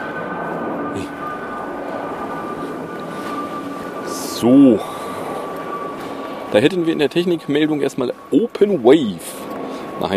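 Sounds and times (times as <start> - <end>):
airplane flying overhead: 0.0 - 10.1
speech: 4.4 - 4.9, 6.5 - 9.4, 10.0 - 10.1.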